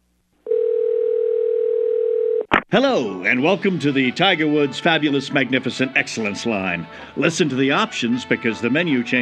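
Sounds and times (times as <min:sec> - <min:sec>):
telephone dial tone: 0:00.5 - 0:02.5
speech: 0:02.7 - 0:09.2.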